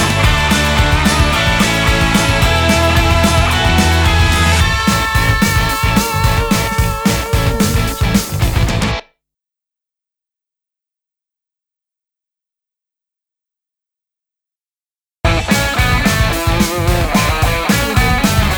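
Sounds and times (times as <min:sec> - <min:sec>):
energetic indie rock christmas music with jingle bells: 0:00.0 - 0:09.0, 0:15.3 - 0:18.5.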